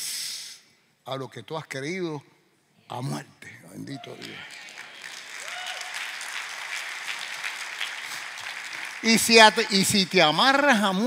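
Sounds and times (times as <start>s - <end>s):
speech: 1.1s - 4.6s, 9.0s - 11.0s
audience applause: 4.1s - 11.0s.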